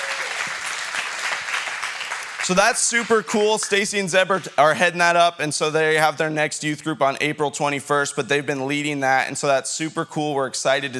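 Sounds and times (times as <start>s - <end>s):
round of applause: 0.0s - 3.4s
speech: 2.4s - 10.9s.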